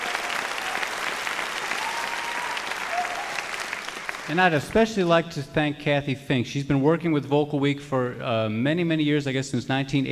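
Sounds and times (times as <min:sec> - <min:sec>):
audience applause: 0:00.0 - 0:04.4
speech: 0:04.3 - 0:10.1.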